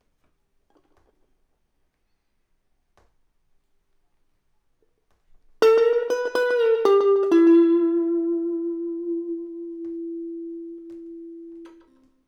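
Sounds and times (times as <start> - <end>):
electric guitar: 5.6 - 12.2.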